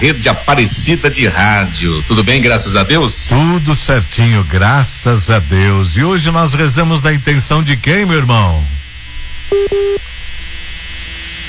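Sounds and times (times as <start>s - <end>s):
speech: 0.0s - 8.8s, 9.5s - 10.1s
hum: 0.0s - 11.4s
phone line disconnect beeps on a radio call-in line: 9.1s - 10.0s.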